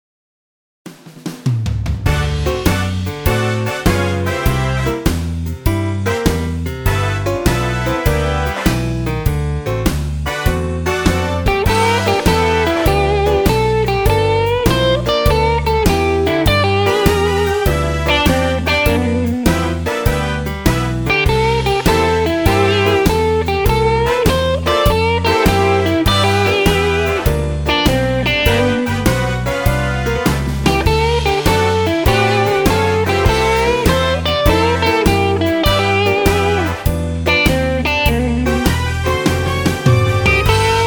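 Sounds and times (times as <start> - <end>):
jump blues music: 0.9 - 40.8.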